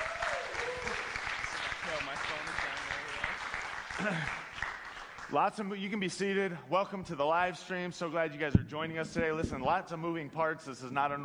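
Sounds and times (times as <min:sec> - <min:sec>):
church congregation clapping: 0:00.0 - 0:05.8
speech: 0:04.0 - 0:04.4, 0:05.3 - 0:11.2.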